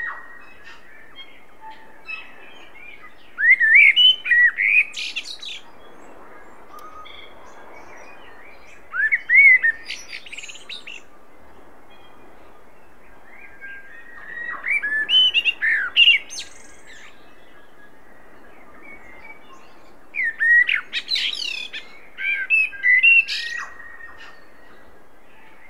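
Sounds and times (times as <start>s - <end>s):
common blackbird singing: 0.0s - 5.9s, 6.7s - 11.1s, 13.4s - 17.8s, 19.0s - 24.6s.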